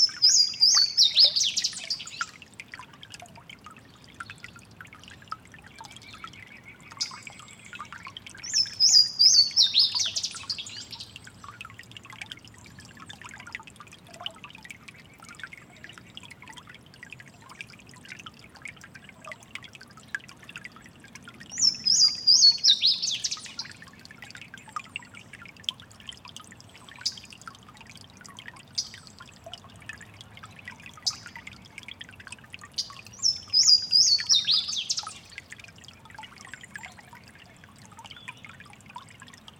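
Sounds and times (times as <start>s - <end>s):
Louisiana waterthrush song: 0.0s - 2.3s, 8.4s - 11.0s, 21.6s - 23.6s, 32.8s - 35.3s
stream noise: 0.0s - 39.5s.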